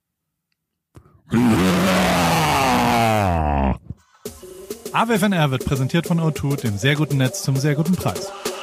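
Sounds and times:
person imitating a white tiger growl: 1.3 - 4.0
speech: 5.0 - 8.5.

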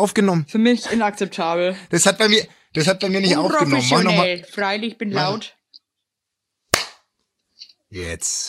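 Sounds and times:
speech: 0.0 - 5.6, 7.9 - 8.4
single hand clap: 6.7 - 7.1.

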